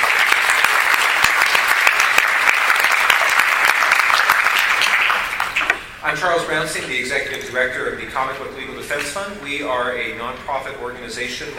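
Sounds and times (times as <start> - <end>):
audience round of applause: 0.0 - 5.8
speech: 6.1 - 11.5.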